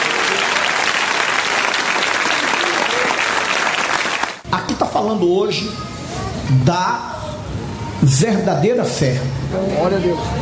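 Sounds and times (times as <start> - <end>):
audience applause: 0.0 - 4.4
speech: 5.0 - 5.9, 6.5 - 7.1, 8.0 - 10.4.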